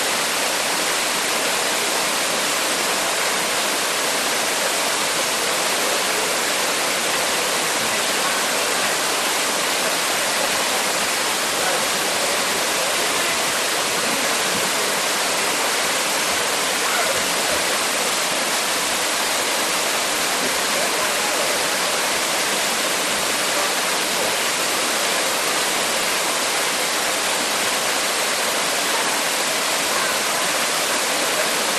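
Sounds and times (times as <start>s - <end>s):
waterfall into a lagoon in a rainforest: 0.0s - 31.7s
people chatting: 4.6s - 18.6s, 20.3s - 25.4s, 28.9s - 31.7s.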